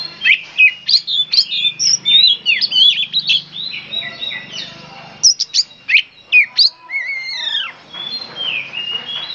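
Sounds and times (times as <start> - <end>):
Oriental magpie-robin delivering loud varied whistled phrases: 0.0 - 9.3.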